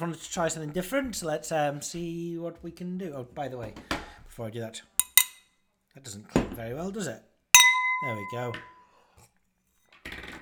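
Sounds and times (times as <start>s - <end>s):
speech: 0.0s - 4.9s, 6.0s - 7.3s, 8.0s - 8.7s
faint clinks: 5.0s - 5.4s, 7.6s - 8.7s
wine bottle being opened: 5.0s - 5.4s.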